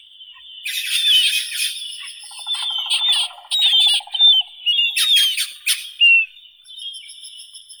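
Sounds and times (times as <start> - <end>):
marbled murrelet Brachyramphus marmoratus calling: 0.7 - 6.2.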